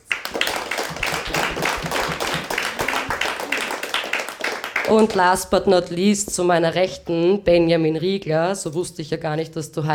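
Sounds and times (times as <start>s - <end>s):
audience applause: 0.0s - 5.2s
speech: 4.9s - 9.9s.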